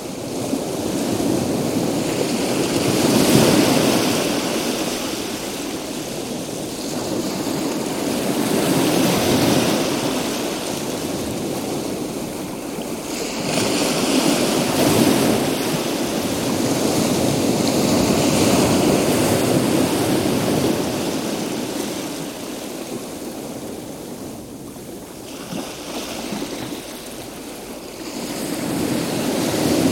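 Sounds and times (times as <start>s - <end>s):
calm sea: 0.0s - 29.9s.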